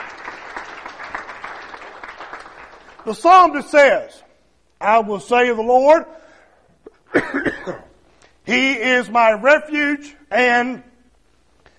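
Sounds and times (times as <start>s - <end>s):
church congregation applauding: 0.0s - 3.9s
speech: 3.0s - 4.2s, 4.8s - 6.2s, 7.1s - 7.8s, 8.5s - 10.9s.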